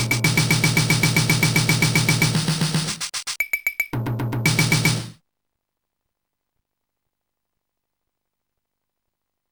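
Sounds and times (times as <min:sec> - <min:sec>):
drum part: 0:00.0 - 0:05.2.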